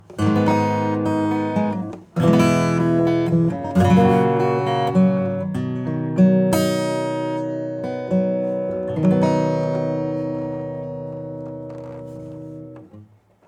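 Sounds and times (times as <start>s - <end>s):
acoustic instrument body: 0.0s - 13.4s.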